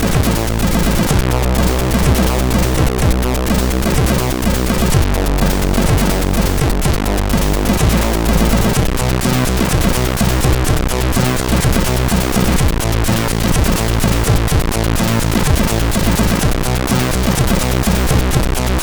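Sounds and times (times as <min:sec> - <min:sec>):
MOS6581R3 SID chip drum track: 0:00.0 - 0:18.8.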